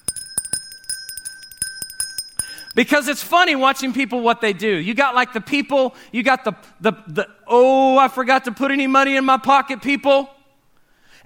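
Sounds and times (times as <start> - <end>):
hand bell ringing at charity bucket: 0.0 - 3.0
speech: 2.8 - 10.4.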